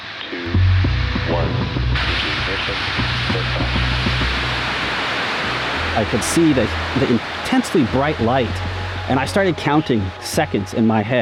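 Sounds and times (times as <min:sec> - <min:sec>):
speech: 0:01.3 - 0:03.6, 0:06.0 - 0:11.2
Euclid mission rocket launch roaring in Florida: 0:02.0 - 0:09.5.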